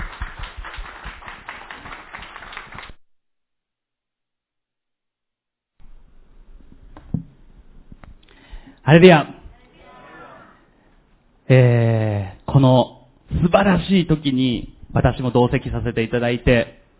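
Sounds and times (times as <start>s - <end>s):
audience clapping: 0.0s - 3.0s
speech: 8.9s - 9.4s, 11.5s - 11.8s, 12.6s - 12.9s, 13.5s - 16.8s.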